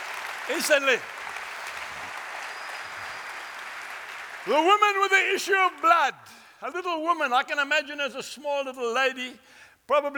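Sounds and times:
audience clapping: 0.0 - 6.1
speech: 0.5 - 1.2, 4.4 - 10.1.

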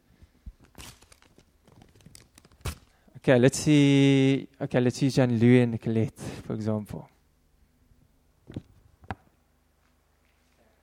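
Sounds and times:
paper envelope being handled: 0.6 - 2.9
speech: 3.2 - 7.1.

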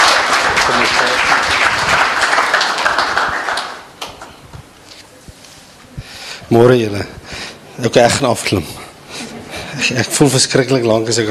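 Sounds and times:
audience applause: 0.0 - 4.3
speech: 6.5 - 7.2, 7.8 - 8.8, 9.8 - 11.2.

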